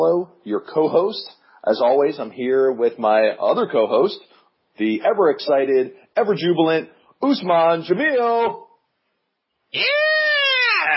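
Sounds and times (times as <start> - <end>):
speech: 0.0 - 8.7, 9.7 - 10.2
high-pitched excited yell: 9.8 - 10.9.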